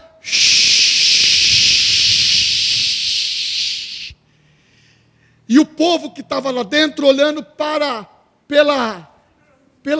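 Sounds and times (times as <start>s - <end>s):
voice imitating running jet turbines: 0.2s - 4.2s
speech: 5.5s - 9.1s.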